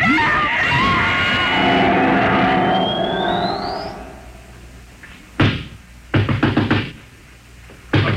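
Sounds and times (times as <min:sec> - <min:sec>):
electronic whirring hum: 0:00.7 - 0:06.1
pounding on a door: 0:05.4 - 0:07.0.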